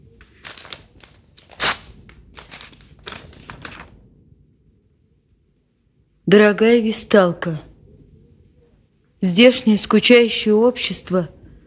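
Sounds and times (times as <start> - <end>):
paper of an opened letter crinkling: 0.0 - 4.0
speech: 6.3 - 7.7, 9.2 - 11.4.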